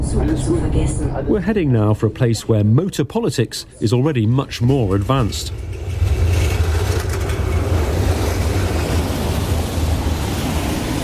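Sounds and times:
trams at a busy city junction: 0.0s - 11.0s
speech: 0.2s - 5.8s
busy city junction traffic: 4.7s - 11.0s
cars at a busy city junction: 4.9s - 11.0s.

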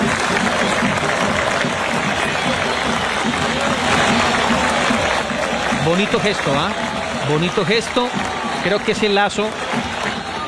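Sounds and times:
stadium crowd applauding: 0.0s - 10.4s
speech: 5.9s - 9.9s.

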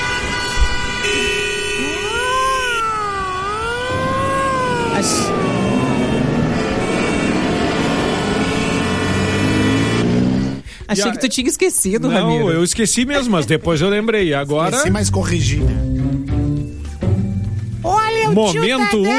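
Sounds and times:
siren-like synth tones: 1.0s - 10.6s
radio traffic jingle musical backing: 4.6s - 19.1s
speech: 10.9s - 15.9s, 18.4s - 19.1s.

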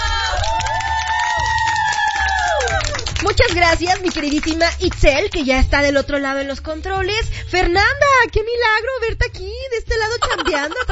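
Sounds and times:
applause and cheering: 0.0s - 5.5s
speech: 3.5s - 10.9s
laughter: 10.2s - 10.9s.

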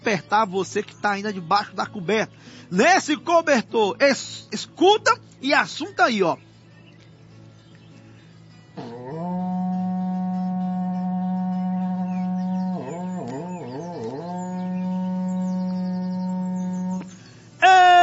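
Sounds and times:
speech: 0.1s - 6.5s
berrante cattle horn blowing: 8.8s - 17.2s.

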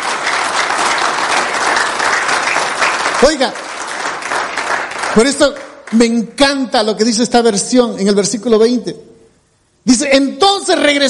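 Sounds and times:
audience applauding: 0.0s - 6.1s
speech: 3.2s - 3.6s, 5.2s - 9.1s, 9.8s - 11.0s.

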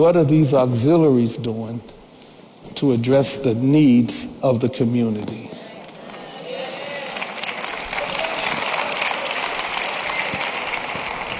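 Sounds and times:
speech: 0.0s - 2.0s, 2.7s - 5.6s
audience clapping: 5.8s - 11.3s.

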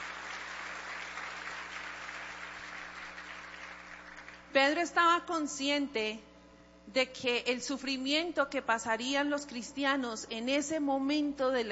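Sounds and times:
audience applause: 0.0s - 4.4s
speech: 4.5s - 6.3s, 6.9s - 11.7s.

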